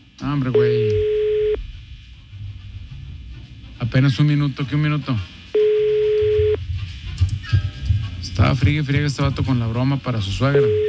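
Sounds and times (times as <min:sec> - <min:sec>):
faint low hum and telephone line noise: 0:00.0 - 0:10.8
speech: 0:00.3 - 0:01.0, 0:03.9 - 0:05.4, 0:08.4 - 0:10.8
telephone ring tone from an unanswered call: 0:00.6 - 0:01.6, 0:05.6 - 0:06.6, 0:10.6 - 0:10.8.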